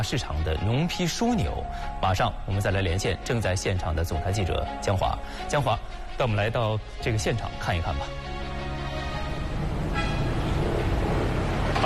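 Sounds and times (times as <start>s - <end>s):
speech: 0.0s - 8.4s
trucks driving in and out: 8.8s - 11.8s.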